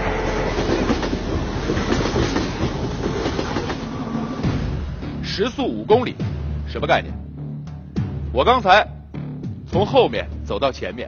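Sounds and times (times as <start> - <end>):
thin metallic whine: 0.0 - 3.1
train rolling slowly on rails: 0.0 - 5.0
speech: 5.4 - 7.2, 8.4 - 8.9, 9.7 - 11.0.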